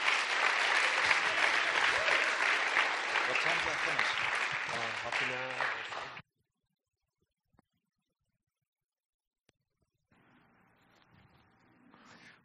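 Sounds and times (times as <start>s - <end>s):
church congregation applause welcoming a guest speaker: 0.0s - 6.2s.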